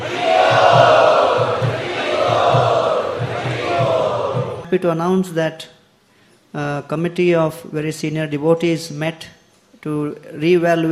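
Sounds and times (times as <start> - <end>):
crowd at an ISKCON Chowpatty gathering chanting loudly in welcome: 0.0 - 4.7
speech: 4.7 - 5.8, 6.5 - 10.9.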